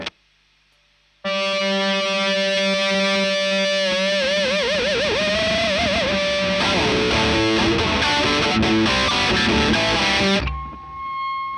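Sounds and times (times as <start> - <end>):
electric guitar line through a Marshall amplifier: 1.2 - 11.5.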